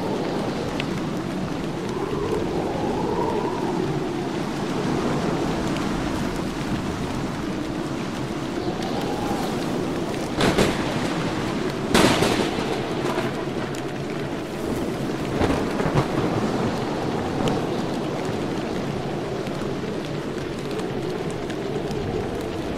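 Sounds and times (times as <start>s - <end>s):
steady rain and wind: 0.0s - 22.7s
sharp bright cracks: 10.1s - 13.9s.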